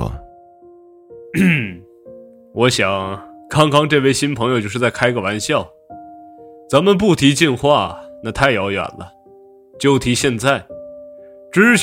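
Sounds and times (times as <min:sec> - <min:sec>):
person coughing softly: 0:01.3 - 0:01.9
speech: 0:02.6 - 0:05.8, 0:06.7 - 0:09.2, 0:09.8 - 0:10.8, 0:11.5 - 0:11.8.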